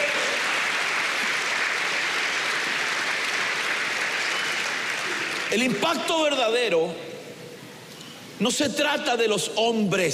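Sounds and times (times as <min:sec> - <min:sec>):
audience applauding: 0:00.0 - 0:06.1
speech: 0:05.5 - 0:07.0, 0:08.4 - 0:10.1.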